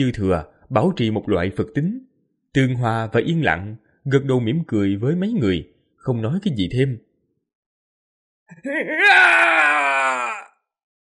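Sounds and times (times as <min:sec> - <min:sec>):
speech: 0:00.0 - 0:07.1, 0:08.5 - 0:10.5
distant anguished screaming: 0:08.5 - 0:10.6.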